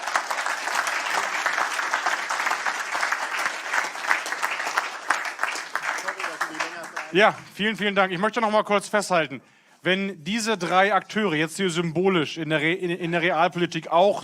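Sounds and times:
audience applause: 0:00.0 - 0:07.5
speech: 0:07.1 - 0:14.2.

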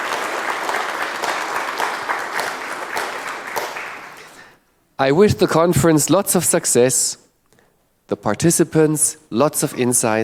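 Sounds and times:
crowd applause: 0:00.0 - 0:04.6
speech: 0:05.0 - 0:07.2, 0:08.1 - 0:10.2.

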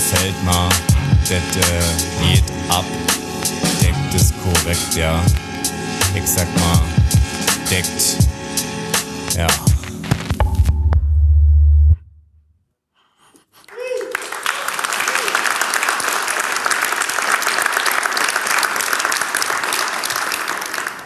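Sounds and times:
deep droning hum: 0:00.0 - 0:08.9, 0:10.4 - 0:12.1
speech: 0:00.2 - 0:03.3, 0:04.1 - 0:05.5, 0:06.1 - 0:08.3, 0:09.4 - 0:09.7
audience applause: 0:13.7 - 0:21.0.

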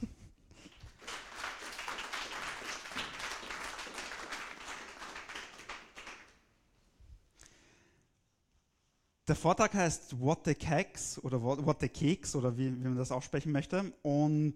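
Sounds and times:
audience applause: 0:00.7 - 0:06.4
speech: 0:09.3 - 0:14.5.

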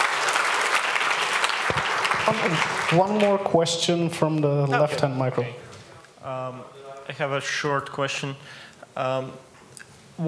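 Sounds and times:
audience applause for a speaker after a conference talk: 0:00.0 - 0:03.7
speech: 0:01.7 - 0:09.5.

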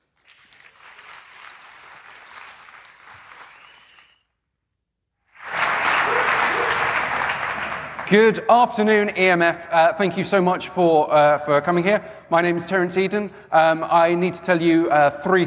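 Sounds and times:
audience applause: 0:00.2 - 0:04.2, 0:05.4 - 0:08.2
speech: 0:08.1 - 0:15.4.

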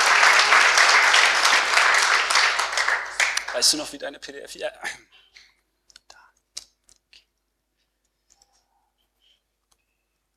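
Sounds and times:
audience applause: 0:00.0 - 0:04.0
speech: 0:03.6 - 0:05.5.

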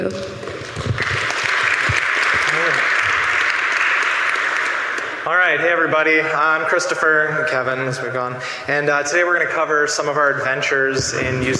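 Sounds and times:
speech: 0:00.0 - 0:00.9, 0:05.3 - 0:11.5
audience applause: 0:00.4 - 0:07.2.

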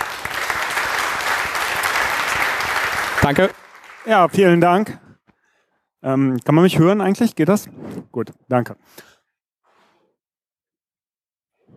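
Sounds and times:
audience applause: 0:00.0 - 0:04.9
speech: 0:03.3 - 0:05.0, 0:06.0 - 0:09.1.

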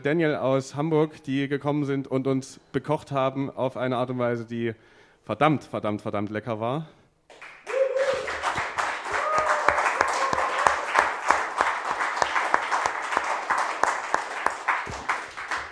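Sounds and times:
speech: 0:00.0 - 0:07.5
audience applause: 0:07.3 - 0:15.6
whoops and cheering voices: 0:07.6 - 0:11.3.

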